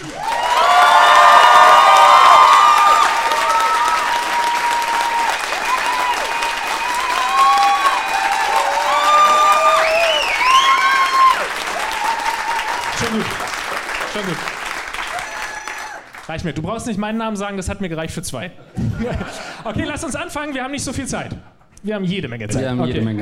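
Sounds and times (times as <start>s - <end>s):
crowd cheering and whooping: 0.0s - 13.3s, 15.0s - 16.1s
crowd applause: 0.0s - 16.3s
speech: 16.4s - 23.2s.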